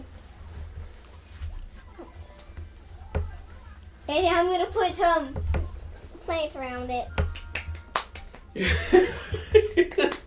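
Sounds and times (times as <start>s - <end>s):
speech: 4.1s - 5.4s, 6.3s - 7.2s, 8.5s - 9.6s
hand clapping: 7.2s - 8.8s, 9.8s - 10.2s.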